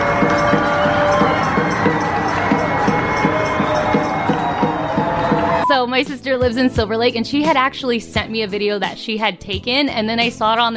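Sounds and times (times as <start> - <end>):
neighbors screaming in Silver Lake: 0.0 - 5.8
speech: 6.0 - 10.7.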